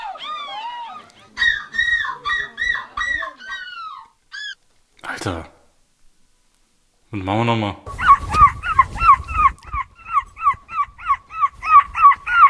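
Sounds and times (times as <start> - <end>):
people imitating seagull cries in a contest: 0.0 - 4.6, 7.9 - 12.4
speech: 5.2 - 5.6, 7.1 - 8.0.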